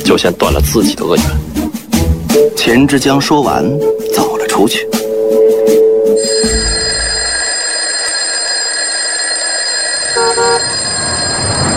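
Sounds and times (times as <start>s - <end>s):
speech: 0.1s - 1.5s, 2.6s - 4.8s, 5.7s - 6.9s
loud electric bell ringing for end of work: 6.2s - 11.7s.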